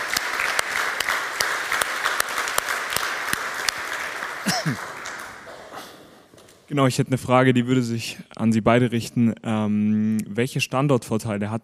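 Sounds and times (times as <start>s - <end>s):
audience applause: 0.0s - 6.5s
speech: 4.6s - 4.9s, 6.7s - 11.6s.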